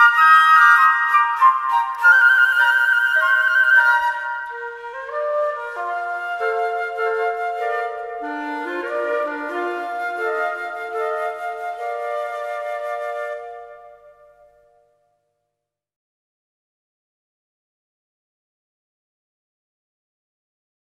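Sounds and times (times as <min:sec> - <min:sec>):
minuet for three flutes in C: 0:00.0 - 0:14.8.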